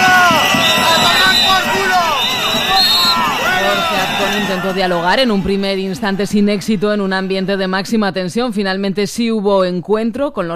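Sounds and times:
200 protesters shouting and booing at the President of Aragon at an event in Huesca: 0.0 - 8.3
speech: 4.7 - 10.5.

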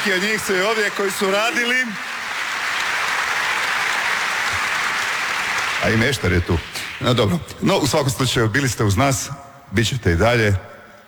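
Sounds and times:
speech: 0.0 - 2.1, 5.8 - 11.0
studio audience clapping on a morning television show: 0.0 - 8.4.

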